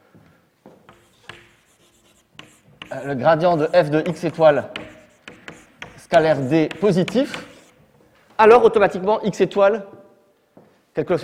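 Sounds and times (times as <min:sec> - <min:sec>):
writing on a board: 0:00.8 - 0:07.9
speech: 0:02.9 - 0:04.8, 0:06.1 - 0:07.5, 0:08.4 - 0:10.0, 0:11.0 - 0:11.2.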